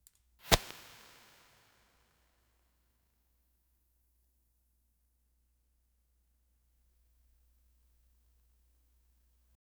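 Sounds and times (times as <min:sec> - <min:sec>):
match striking: 0:00.4 - 0:01.7.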